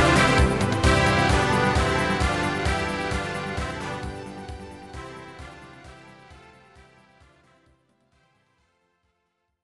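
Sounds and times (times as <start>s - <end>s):
circus song backing track: 0.0s - 7.6s.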